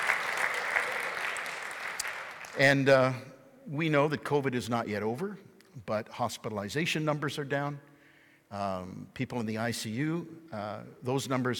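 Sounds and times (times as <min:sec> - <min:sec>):
audience clapping: 0:00.0 - 0:02.8
speech: 0:02.6 - 0:07.9, 0:08.5 - 0:11.5.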